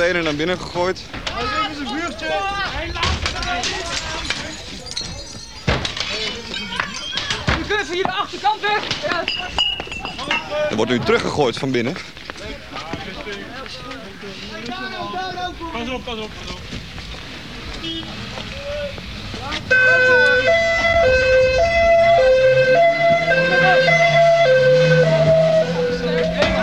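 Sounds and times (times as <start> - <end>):
speech: 0.0 - 2.8, 7.9 - 16.8, 17.8 - 24.1
noise: 0.0 - 26.6
police car driving off with two-tone siren wailing: 19.7 - 26.6.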